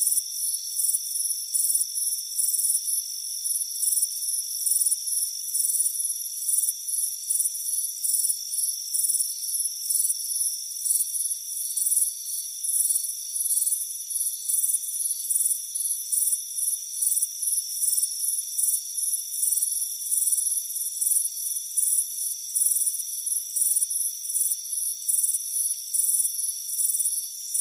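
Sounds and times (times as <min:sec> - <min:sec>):
crickets chirping in a dense high-pitched chorus: 0:00.0 - 0:27.5.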